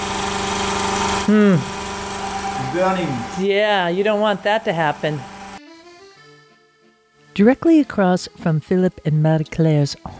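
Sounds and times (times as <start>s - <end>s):
small floor pump dry sucking from a milk tank: 0.0s - 5.8s
speech: 1.3s - 1.8s, 2.6s - 5.3s, 7.4s - 10.1s.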